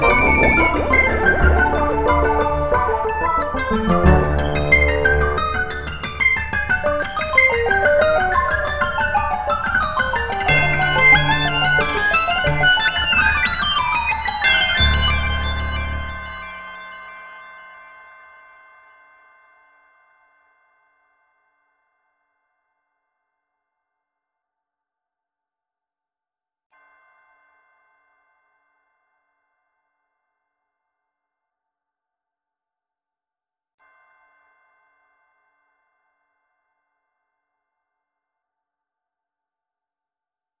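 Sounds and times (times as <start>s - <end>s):
glockenspiel: 0.0s - 16.9s.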